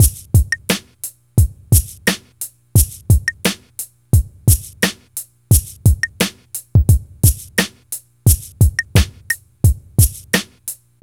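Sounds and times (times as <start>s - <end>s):
hip hop and R&B drum beat: 0.0s - 11.0s.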